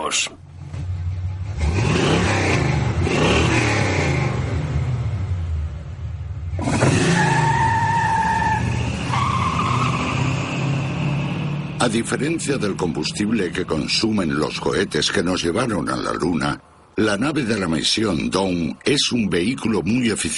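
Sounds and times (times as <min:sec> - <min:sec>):
tyres skidding: 0:00.0 - 0:16.9
speech: 0:00.1 - 0:00.4, 0:11.9 - 0:20.3
two vehicles racing, including a golf cart: 0:00.4 - 0:14.9.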